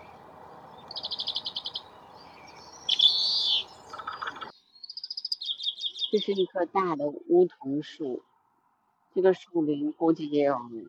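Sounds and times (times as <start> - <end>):
background noise: 0.0 - 10.8
Grey-capped Greenfinch twittering with a nasal wheeze in a Beijing park: 0.8 - 6.4
speech: 6.1 - 8.3, 9.2 - 10.8.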